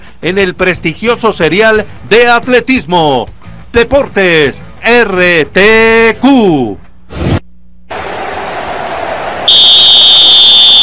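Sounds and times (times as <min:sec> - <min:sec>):
speech: 0:00.2 - 0:06.8
referee whistle blast: 0:09.4 - 0:10.8.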